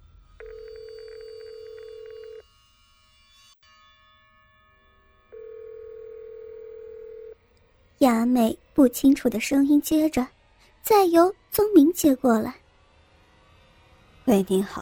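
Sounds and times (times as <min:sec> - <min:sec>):
telephone ringing: 0:00.4 - 0:02.4, 0:05.4 - 0:07.4
speech: 0:08.0 - 0:12.6, 0:14.3 - 0:14.8.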